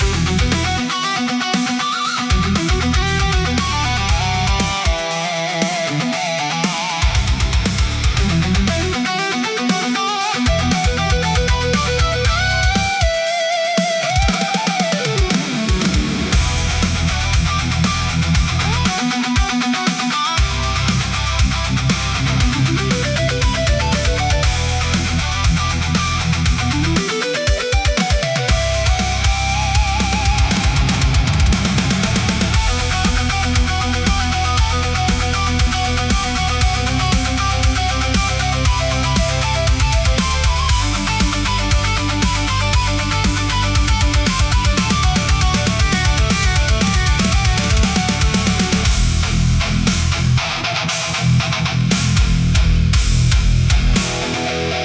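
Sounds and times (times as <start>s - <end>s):
dark aggressive modern metal music: 0.0s - 54.8s.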